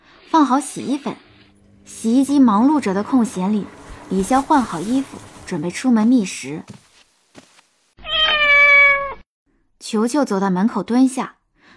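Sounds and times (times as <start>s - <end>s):
speech: 0.4s - 1.3s, 1.9s - 6.8s, 9.9s - 11.7s
cat meowing: 8.0s - 9.2s.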